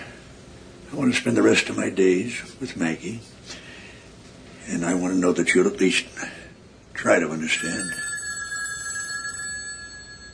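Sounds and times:
low hiss: 0.0 - 10.3
speech: 0.9 - 3.6, 4.7 - 6.4, 7.0 - 8.0
telephone ringing with a thin electronic trill: 7.5 - 10.3.

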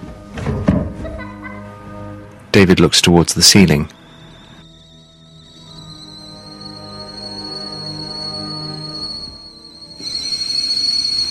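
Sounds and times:
speech: 2.6 - 4.0
kettle on the boil whistling shrilly on a stove: 4.0 - 11.3.

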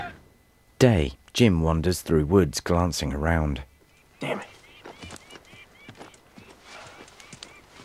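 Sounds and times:
speech: 0.8 - 4.5
mare's hoof clops: 4.6 - 7.8.

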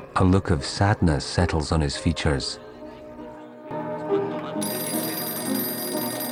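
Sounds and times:
speech: 0.2 - 2.7
telephone ringing in a bar: 4.6 - 6.3.

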